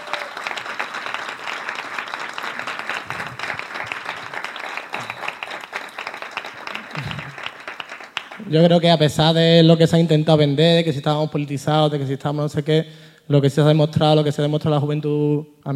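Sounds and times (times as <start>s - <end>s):
crowd applauding: 0.0s - 8.9s
speech: 8.5s - 15.7s.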